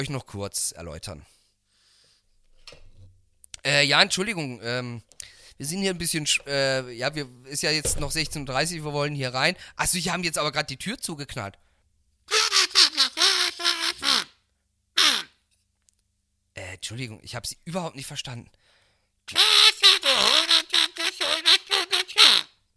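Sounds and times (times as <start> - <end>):
speech: 0.0 - 1.4, 3.6 - 11.6, 16.9 - 18.7, 19.3 - 19.7
kazoo buzzing: 12.3 - 14.3, 15.0 - 15.4, 19.3 - 22.5.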